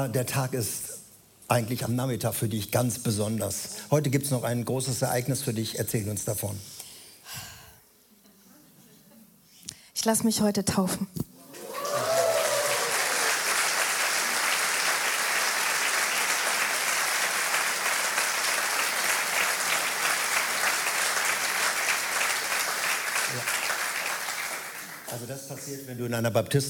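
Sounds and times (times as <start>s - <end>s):
speech: 0.0s - 0.9s, 1.5s - 7.4s, 10.0s - 11.2s, 25.6s - 26.6s
crowd applause: 11.4s - 25.2s.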